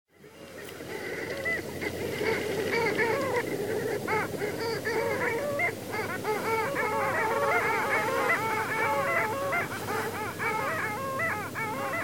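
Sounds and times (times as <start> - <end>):
Long-tailed duck chorus of nasal wavering calls at Wakkanai: 0.2 - 12.0.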